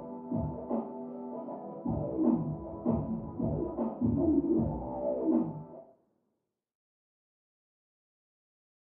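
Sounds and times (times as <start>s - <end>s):
hip hop beat: 0.0s - 5.8s.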